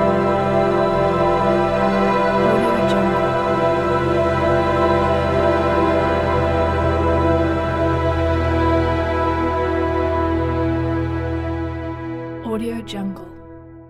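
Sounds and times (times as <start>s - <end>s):
dark fantasy ambience: 0.0s - 13.8s.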